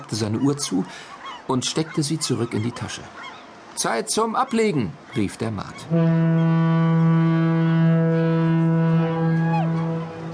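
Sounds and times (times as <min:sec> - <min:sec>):
speech: 0:00.0 - 0:08.6
ship's whistle blowing a mournful tone: 0:05.9 - 0:10.3.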